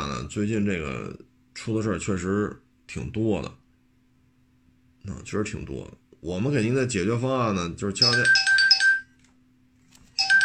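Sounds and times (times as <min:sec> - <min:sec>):
speech: 0:00.3 - 0:03.6, 0:05.0 - 0:08.6
phone ringtone: 0:08.0 - 0:09.2, 0:10.1 - 0:10.4.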